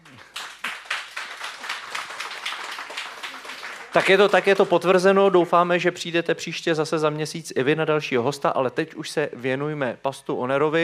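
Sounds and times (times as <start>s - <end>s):
audience applause: 0.0s - 5.1s
speech: 3.9s - 10.8s.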